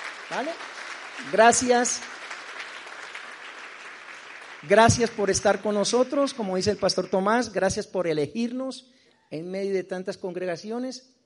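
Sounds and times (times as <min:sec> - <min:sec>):
audience applauding: 0:00.0 - 0:06.3
speech: 0:00.3 - 0:02.2, 0:04.6 - 0:11.2.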